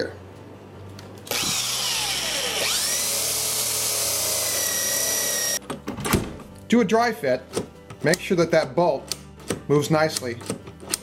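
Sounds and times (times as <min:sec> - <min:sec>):
speech: 0:00.0 - 0:00.2, 0:06.7 - 0:10.6
drilling one-inch hole in door jamb: 0:01.3 - 0:05.6.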